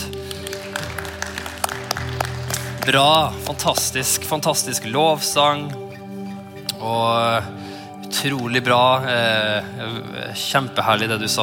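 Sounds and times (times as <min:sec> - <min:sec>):
audience applause: 0:00.0 - 0:04.2
sharp claps: 0:00.0 - 0:04.3
speech: 0:02.8 - 0:05.8, 0:06.8 - 0:11.4.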